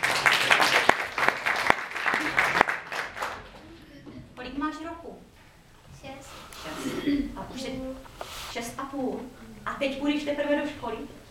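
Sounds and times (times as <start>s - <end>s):
audience applause: 0.0s - 3.6s
speech: 9.8s - 11.1s.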